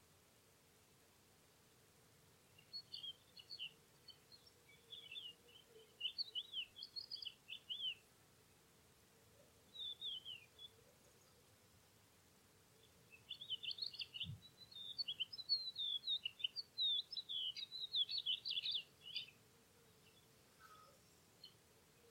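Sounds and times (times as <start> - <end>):
corn bunting, little bustard and bee-eaters singing in spring cereal fields: 2.5 - 8.0, 9.7 - 11.8, 12.8 - 22.0.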